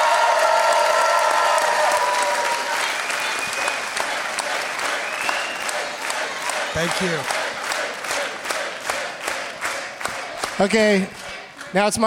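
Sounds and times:
faint whoops or cheers: 0.0 - 3.3
audience applause: 0.0 - 11.8
speech: 6.8 - 7.4, 10.6 - 12.0.

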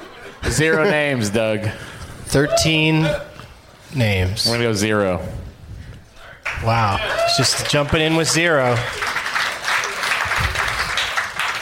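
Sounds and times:
speech: 0.5 - 3.3, 3.9 - 5.4, 6.6 - 9.1
audience applause: 6.4 - 11.6.

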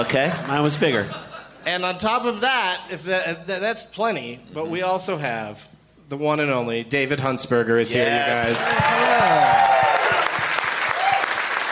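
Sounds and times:
speech: 0.0 - 9.6
person whooping: 8.1 - 11.4
audience applause: 8.5 - 11.6.

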